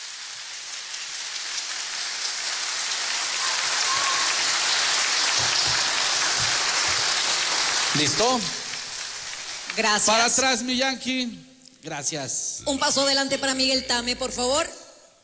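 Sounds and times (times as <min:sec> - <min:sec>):
crowd applauding: 0:02.3 - 0:10.6
speech: 0:08.0 - 0:08.6, 0:09.8 - 0:14.7.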